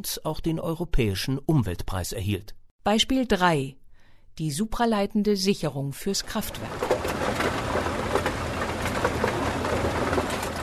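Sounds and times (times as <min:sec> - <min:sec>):
speech: 0:00.0 - 0:03.8, 0:04.4 - 0:06.9
coal pieces crackling through a coal mill: 0:06.2 - 0:10.6.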